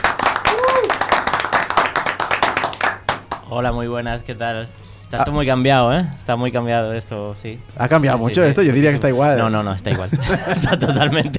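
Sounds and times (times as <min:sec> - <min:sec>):
audience applause: 0:00.0 - 0:03.4
whoop or whistle: 0:00.5 - 0:01.0
speech: 0:03.5 - 0:11.3
laughter: 0:09.6 - 0:11.3.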